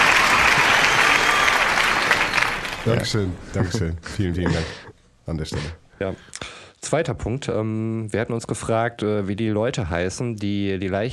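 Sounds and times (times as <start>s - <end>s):
applause from 1950s-style audience: 0.0s - 3.3s
speech: 2.8s - 11.1s.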